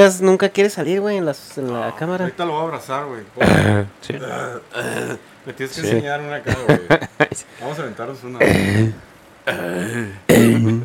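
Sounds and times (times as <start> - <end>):
speech: 0.0 - 10.8
person burping: 3.4 - 5.2, 8.4 - 10.8
laughter: 6.4 - 7.6.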